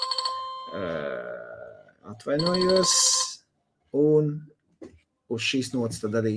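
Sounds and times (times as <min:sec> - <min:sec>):
phone ringtone for incoming call: 0:00.0 - 0:00.9, 0:02.3 - 0:03.4
speech: 0:00.7 - 0:01.4, 0:02.0 - 0:03.2, 0:03.9 - 0:04.5, 0:05.3 - 0:06.3.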